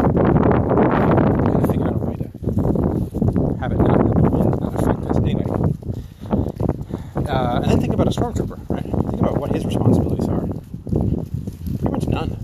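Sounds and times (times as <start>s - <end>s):
wind blowing into a microphone outdoors: 0.0s - 12.4s
speech: 8.1s - 8.7s.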